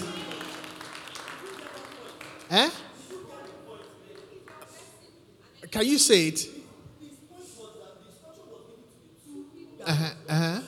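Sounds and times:
audience clapping: 0.0 - 4.8
speech: 2.5 - 2.8, 5.7 - 6.6.

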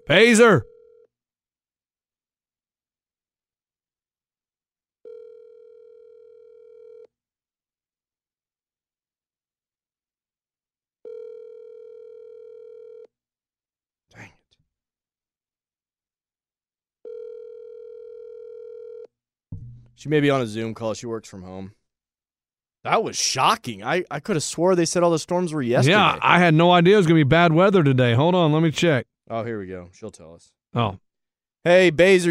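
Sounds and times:
speech: 0.1 - 0.7, 20.0 - 21.8, 22.8 - 31.0, 31.6 - 32.2
outgoing phone call ringback tones: 5.0 - 7.1, 11.0 - 13.1, 17.0 - 19.1.

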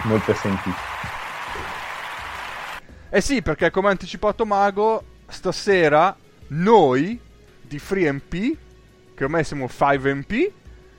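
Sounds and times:
speech: 0.0 - 1.2, 3.1 - 8.6, 9.2 - 10.6
applause sound effect: 0.0 - 2.8.

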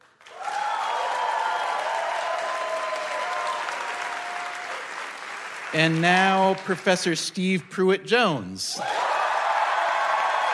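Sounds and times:
audience applause measured by an applause-o-meter: 0.0 - 7.6, 8.8 - 10.5
speech: 5.7 - 9.0.

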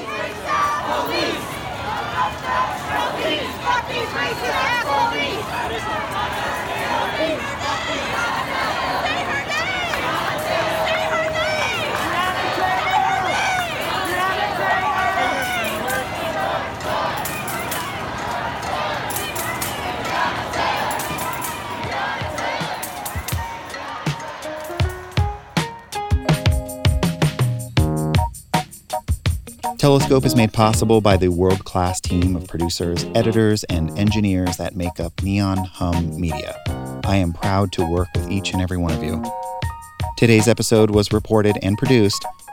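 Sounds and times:
protest crowd of demonstrators chanting and shouting: 0.0 - 25.8
music: 8.3 - 42.5
speech: 29.8 - 39.4, 40.2 - 42.4.

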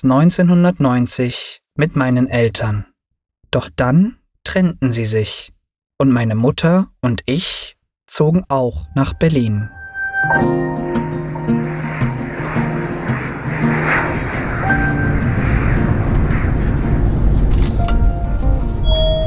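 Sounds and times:
speech: 0.0 - 2.9, 3.5 - 11.2
passenger airplane engines roaring during landing in Berlin: 8.9 - 19.2.

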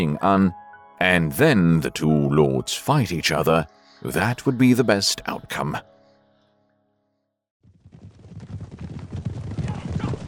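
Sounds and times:
speech: 0.0 - 5.9
hooves hitting the ground: 7.7 - 10.2.

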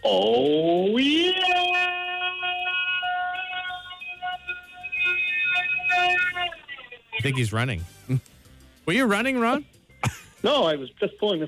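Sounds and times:
speech: 0.0 - 0.4, 7.2 - 11.4
voice imitating an air raid siren: 0.0 - 7.4.

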